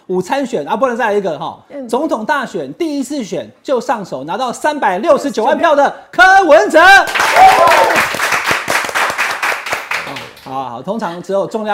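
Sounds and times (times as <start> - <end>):
speech: 0.1 - 8.2, 10.5 - 11.7
person cheering: 7.0 - 8.1
studio applause: 7.0 - 10.5.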